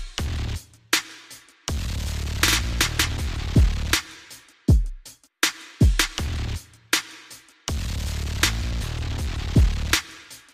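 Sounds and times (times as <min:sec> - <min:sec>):
heavy bass: 0:00.2 - 0:00.7, 0:01.7 - 0:04.0, 0:06.2 - 0:06.7, 0:07.7 - 0:10.1.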